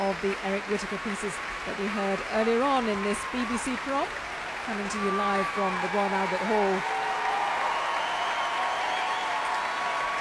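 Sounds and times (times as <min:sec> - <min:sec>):
speech: 0:00.1 - 0:07.0
audience cheering and screaming: 0:02.6 - 0:10.1.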